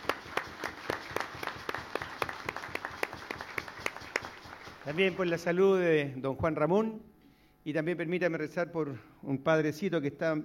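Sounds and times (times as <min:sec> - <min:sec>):
audience applauding: 0:00.0 - 0:05.5
speech: 0:04.8 - 0:10.4.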